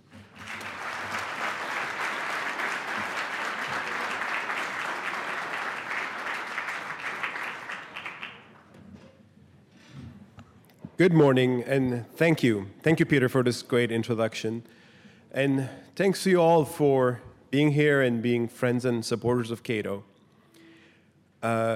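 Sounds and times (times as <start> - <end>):
audience applause welcoming a senior fellow at a Cato Institute event: 0.0 - 8.7
speech: 11.0 - 20.1, 21.4 - 21.7.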